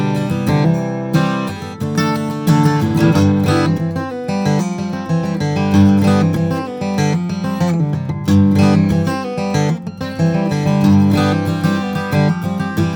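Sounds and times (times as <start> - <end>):
1967 Gibson J-45 mahogany and spruce steel string flattop guitar playing: 0.0 - 12.9.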